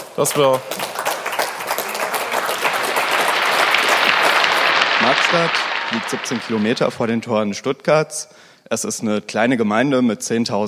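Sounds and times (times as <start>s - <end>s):
applause: 0.0s - 7.3s
speech: 0.2s - 0.9s, 5.0s - 10.6s.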